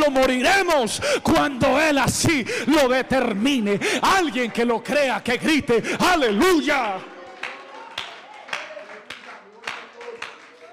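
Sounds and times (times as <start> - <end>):
speech: 0.0 - 7.1
applause: 6.0 - 10.7.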